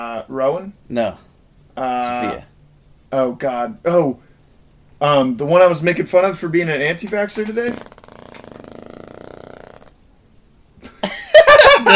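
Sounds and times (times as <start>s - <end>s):
speech: 0.0s - 2.5s, 3.1s - 4.3s, 5.0s - 8.0s
fart: 7.4s - 10.0s
laughter: 10.9s - 11.9s.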